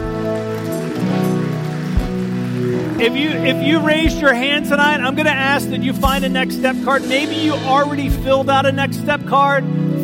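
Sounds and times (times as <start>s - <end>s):
audience clapping: 0.0s - 7.6s
sustained musical chords: 0.0s - 10.0s
speech: 3.0s - 10.0s.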